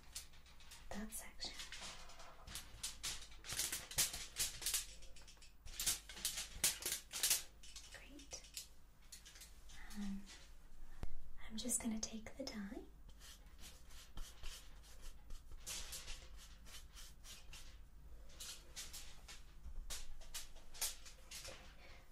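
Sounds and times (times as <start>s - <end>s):
tin foil slipped under hair during a salon hair-dyeing session: 0.0s - 10.1s, 14.3s - 21.6s
faint whispering: 0.8s - 2.3s, 7.8s - 8.7s, 9.7s - 10.4s
speech: 1.0s - 1.4s, 11.6s - 13.0s.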